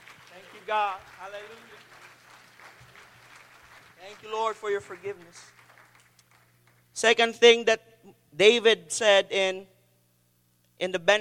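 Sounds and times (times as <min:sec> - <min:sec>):
audience clapping: 0:00.0 - 0:07.0
speech: 0:00.7 - 0:02.1, 0:04.0 - 0:05.6, 0:07.0 - 0:09.7, 0:10.8 - 0:11.1.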